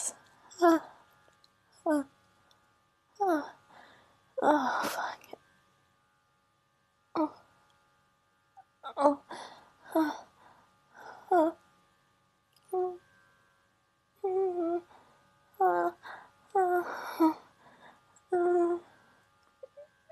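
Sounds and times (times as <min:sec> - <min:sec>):
woman moaning in orgasm: 0:00.5 - 0:00.9, 0:01.8 - 0:02.1, 0:03.2 - 0:03.6, 0:04.4 - 0:05.3, 0:07.2 - 0:07.4, 0:08.9 - 0:10.3, 0:11.0 - 0:11.6, 0:12.7 - 0:13.0, 0:14.2 - 0:14.9, 0:15.6 - 0:17.5, 0:18.3 - 0:18.9.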